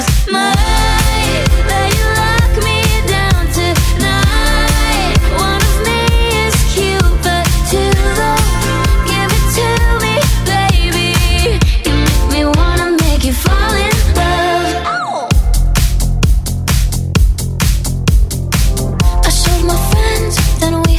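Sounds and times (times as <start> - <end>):
pop drum machine snippets: 0.1 - 20.9.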